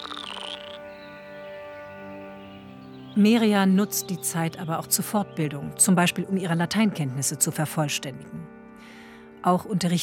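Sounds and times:
frogs croaking: 0:00.0 - 0:02.7
speech: 0:03.2 - 0:08.5, 0:09.4 - 0:10.0.

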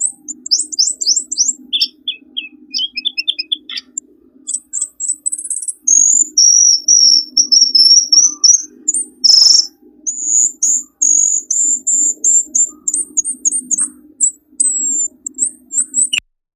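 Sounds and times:
bird lure song of high whistles, rapid trills and chirps: 0:00.0 - 0:16.2.

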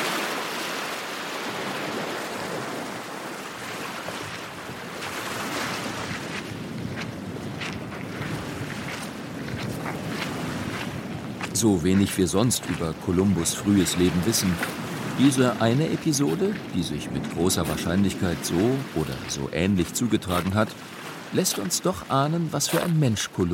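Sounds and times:
ocean waves washing onto a beach on the coast of Portugal: 0:00.0 - 0:23.5
speech: 0:11.6 - 0:23.5.

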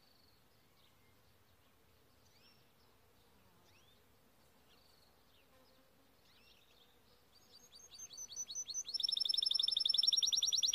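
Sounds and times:
soft hiss: 0:00.0 - 0:09.7
canary singing: 0:07.4 - 0:10.7.

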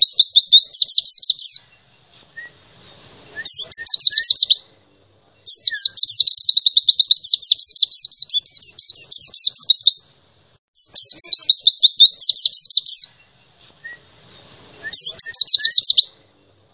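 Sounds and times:
white-eye song of very high rapid chirped notes: 0:00.0 - 0:02.7, 0:03.4 - 0:04.6, 0:05.4 - 0:10.1, 0:10.8 - 0:14.2, 0:14.8 - 0:16.1.

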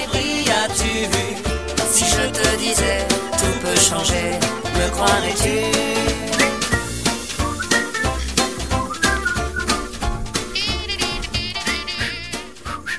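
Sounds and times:
busy upbeat intro theme music with percussive hits: 0:00.0 - 0:12.9
person whistling along with intro theme music: 0:01.2 - 0:09.8, 0:11.4 - 0:12.9.

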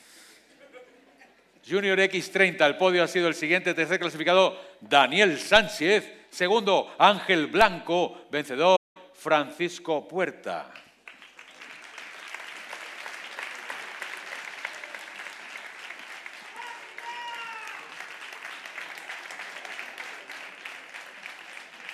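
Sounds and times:
speech: 0:01.7 - 0:10.8
family applauding at award ceremony: 0:10.7 - 0:21.9.

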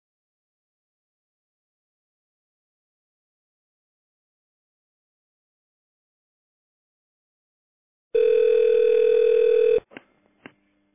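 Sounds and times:
telephone ringing tone while placing an outgoing call: 0:08.2 - 0:09.9.

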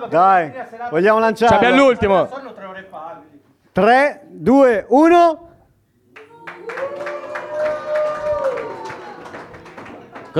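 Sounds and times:
speech: 0:00.0 - 0:03.0, 0:03.8 - 0:05.4
audience applause: 0:06.2 - 0:10.3.

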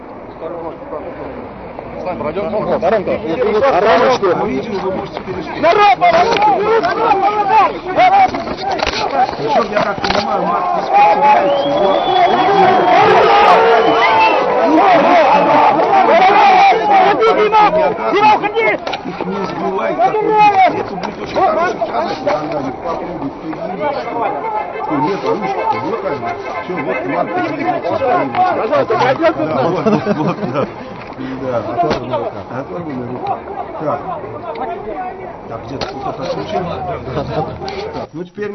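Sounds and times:
street crowd chatter at a rally: 0:00.0 - 0:38.5
laughter: 0:03.4 - 0:24.3, 0:24.9 - 0:32.5, 0:36.0 - 0:38.1.

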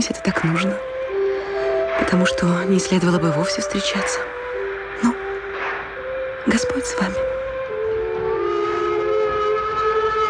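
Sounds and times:
speech: 0:00.0 - 0:00.9, 0:02.0 - 0:04.3, 0:06.5 - 0:07.4
train departing from a station platform at night: 0:00.0 - 0:10.2
steam whistle of a departing train: 0:04.1 - 0:10.2.

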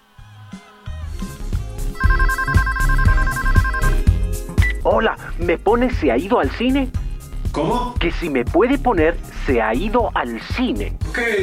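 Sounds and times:
telephone ringing: 0:02.0 - 0:04.1
speech: 0:04.9 - 0:07.0, 0:07.6 - 0:11.4.

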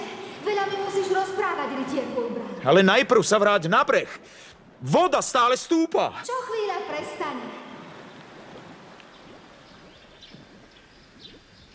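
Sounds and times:
speech: 0:00.6 - 0:07.6
birds calling: 0:07.6 - 0:11.7.

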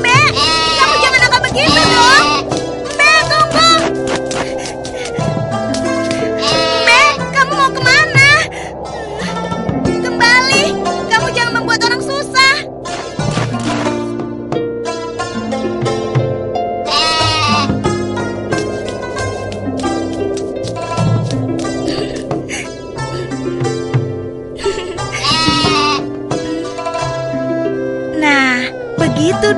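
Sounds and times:
low sustained musical tones: 0:00.0 - 0:29.5
goat bleating: 0:00.2 - 0:02.4, 0:06.4 - 0:07.2, 0:16.9 - 0:17.7, 0:25.1 - 0:26.1.

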